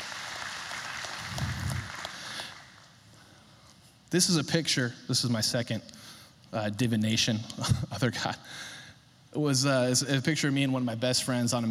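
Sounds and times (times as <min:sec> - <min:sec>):
audience applause: 0:00.0 - 0:03.0
speech: 0:04.1 - 0:11.7.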